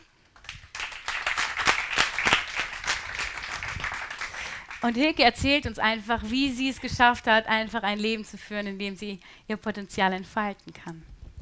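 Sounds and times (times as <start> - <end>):
audience applause welcoming a speaker: 0.4 - 4.8
speech: 4.8 - 11.1.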